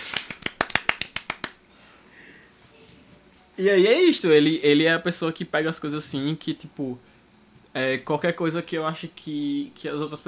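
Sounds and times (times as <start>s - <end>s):
brief burst of applause, quick sharp hand claps: 0.0s - 1.6s
speech: 3.6s - 7.1s, 7.7s - 10.2s.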